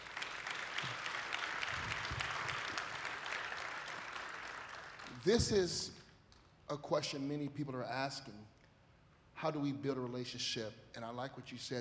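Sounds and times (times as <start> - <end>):
audience applause: 0.0 - 5.3
speech: 5.2 - 6.0, 6.7 - 8.6, 9.4 - 11.8.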